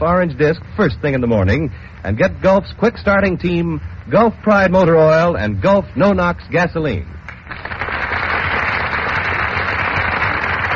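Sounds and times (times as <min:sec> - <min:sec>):
speech: 0:00.0 - 0:07.6
studio audience applause: 0:07.4 - 0:10.7.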